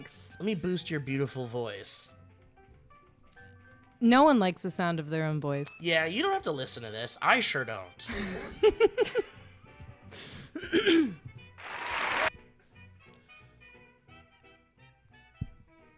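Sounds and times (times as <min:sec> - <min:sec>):
speech: 0:00.0 - 0:02.2, 0:04.0 - 0:09.3, 0:10.1 - 0:11.3
laughter: 0:08.1 - 0:09.5
short applause: 0:11.6 - 0:12.3.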